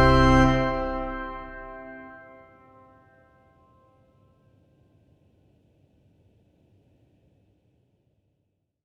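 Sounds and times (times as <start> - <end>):
organ playing: 0.0 - 2.8.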